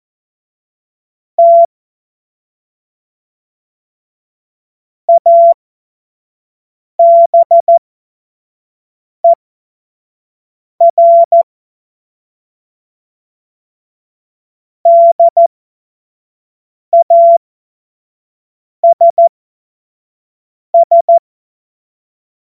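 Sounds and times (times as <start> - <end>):
morse code CW: 1.4 - 1.7, 5.1 - 5.5, 7.0 - 7.7, 10.8 - 11.4, 14.9 - 15.4, 16.9 - 17.4, 18.9 - 19.3, 20.7 - 21.2.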